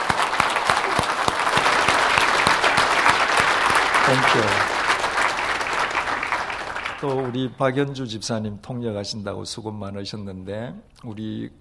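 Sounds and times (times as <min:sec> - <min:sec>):
audience applause: 0:00.0 - 0:07.6
speech: 0:04.1 - 0:04.7, 0:07.0 - 0:11.5.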